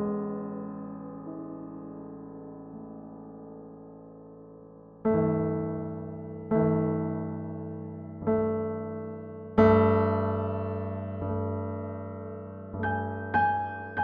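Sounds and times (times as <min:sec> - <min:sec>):
piano in 11-tone equal temperament: 0:00.0 - 0:14.0.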